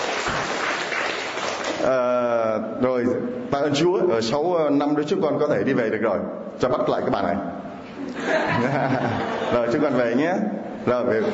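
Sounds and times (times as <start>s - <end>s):
church congregation applause at a Catholic gathering: 0.0s - 1.9s
speech: 1.8s - 11.3s
laughter: 8.0s - 10.0s.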